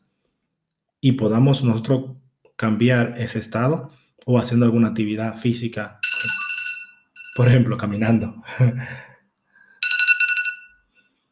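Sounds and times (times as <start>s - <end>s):
speech: 1.0s - 6.4s, 7.4s - 9.1s
alarm going off: 6.0s - 8.2s.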